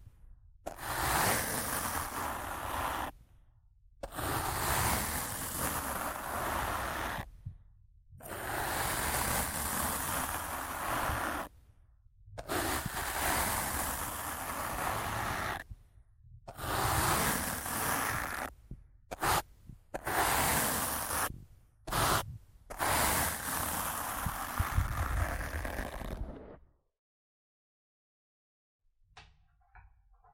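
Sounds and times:
rough scratching and brushing on a microphone: 0.7 - 3.2, 4.1 - 7.3, 8.2 - 11.6, 12.3 - 15.8, 16.5 - 26.6.

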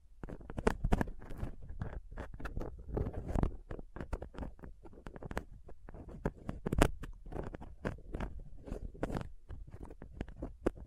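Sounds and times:
scratching and picking at a microphone with a dental pick tweezers and cotton swab: 0.0 - 10.8.

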